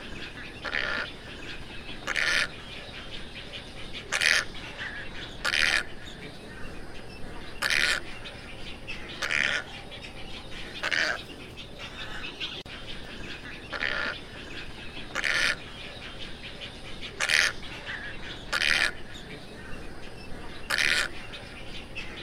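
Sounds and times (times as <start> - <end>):
tricolored heron squawks: 0.0 - 3.1, 3.9 - 6.2, 7.4 - 8.3, 9.1 - 16.2, 17.0 - 19.6, 20.4 - 21.4.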